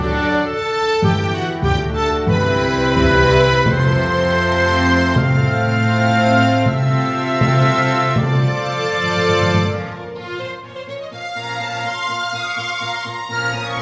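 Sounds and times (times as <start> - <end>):
orchestral background music: 0.0 - 13.7.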